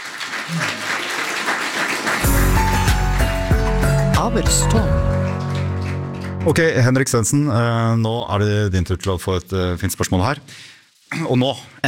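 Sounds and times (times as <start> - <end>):
audience applause: 0.0 - 6.9
speech: 0.5 - 0.9, 4.2 - 5.1, 6.4 - 11.8.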